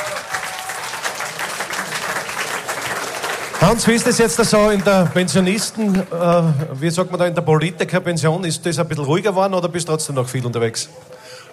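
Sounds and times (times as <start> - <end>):
audience applause: 0.0 - 7.0
speech: 3.6 - 11.2.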